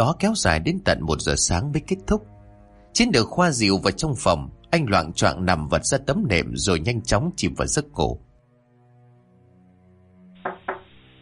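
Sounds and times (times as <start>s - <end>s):
speech: 0.0s - 2.4s, 3.0s - 8.3s
steady low musical drone: 0.0s - 11.1s
knocks on an earthen floor: 10.4s - 11.0s.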